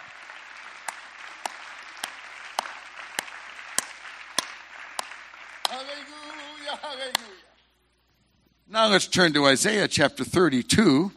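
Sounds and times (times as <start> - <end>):
audience clapping hands: 0.0 - 7.4
speech: 5.8 - 7.5, 8.7 - 11.1.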